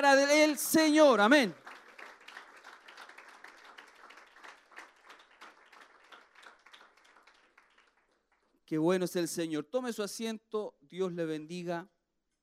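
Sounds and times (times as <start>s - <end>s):
speech: 0.0s - 1.6s, 8.7s - 12.0s
audience applause: 1.1s - 8.6s.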